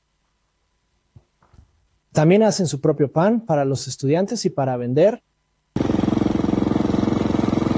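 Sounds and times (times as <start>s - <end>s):
speech: 2.2s - 5.3s
lawn mower engine cutting grass: 5.8s - 7.7s.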